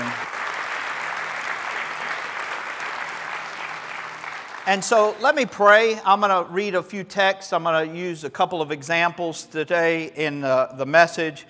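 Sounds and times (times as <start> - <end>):
congregation applauding teenagers into a church sanctuary: 0.0 - 6.0
speech: 4.7 - 11.4.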